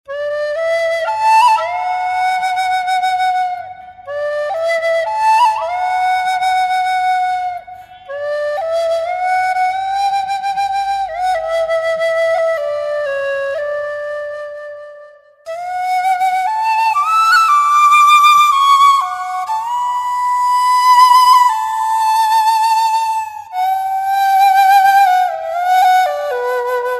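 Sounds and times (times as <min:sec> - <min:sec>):
pleasant flute melody: 0:00.0 - 0:26.9.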